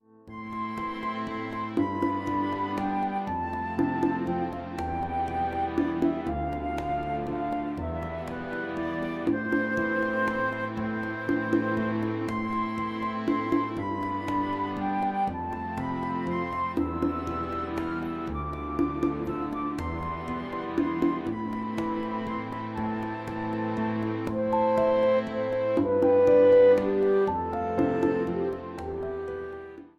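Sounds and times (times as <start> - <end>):
healing pop music: 0.3 - 29.9.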